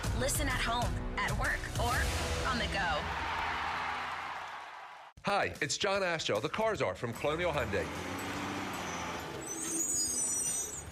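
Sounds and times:
speech: 0:00.2 - 0:03.3, 0:05.3 - 0:08.3
truck arriving: 0:07.1 - 0:10.9.

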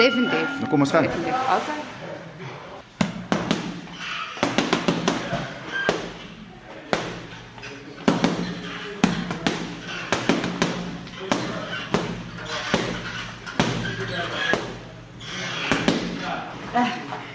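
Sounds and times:
speech: 0:00.0 - 0:02.0
punches hitting a boxing bag: 0:03.0 - 0:06.2, 0:06.9 - 0:07.4, 0:08.0 - 0:14.9, 0:15.6 - 0:16.3.

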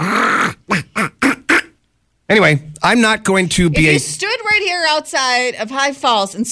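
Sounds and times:
person imitating a quacking squirrel call: 0:00.0 - 0:01.8
speech: 0:02.3 - 0:06.4.

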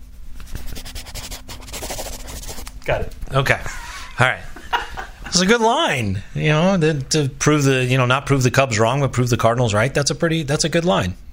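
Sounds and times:
pencil writing on paper: 0:00.6 - 0:02.7
speech: 0:02.9 - 0:04.6, 0:05.3 - 0:11.3
laughter: 0:03.6 - 0:05.5.

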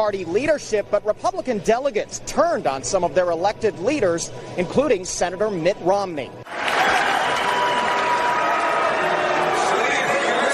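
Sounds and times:
speech: 0:00.0 - 0:06.6
Republican delegates booing Senator Mitt Romney: 0:06.5 - 0:10.5.

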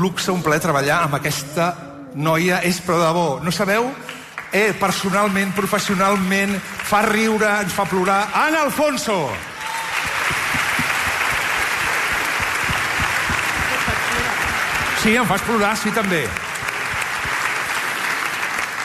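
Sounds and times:
speech: 0:00.0 - 0:09.5, 0:15.0 - 0:16.5
audience applause: 0:04.1 - 0:18.8.

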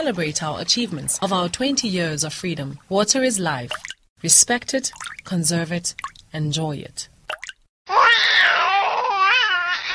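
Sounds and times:
speech: 0:00.0 - 0:07.1
baby crying: 0:07.9 - 0:09.9.

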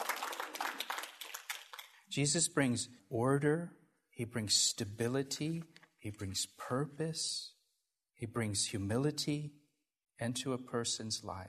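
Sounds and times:
audience applauding: 0:00.0 - 0:02.0
speech: 0:02.1 - 0:07.6, 0:08.2 - 0:09.6, 0:10.2 - 0:11.4.

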